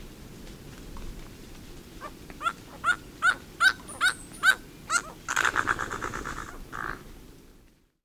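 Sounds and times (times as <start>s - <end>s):
several birds of the Costa Rican cloud forest singing and calling: 2.0s - 7.0s.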